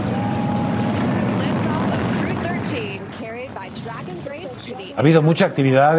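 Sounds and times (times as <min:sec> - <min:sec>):
SpaceX Falcon 9 rocket with Crew Dragon lifting off roar: 0:00.0 - 0:04.3
speech: 0:04.7 - 0:05.9.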